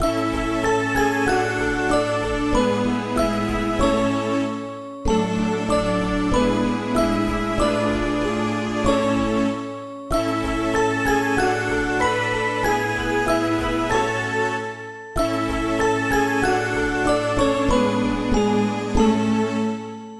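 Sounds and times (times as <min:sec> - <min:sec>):
simple background music: 0:00.0 - 0:20.1.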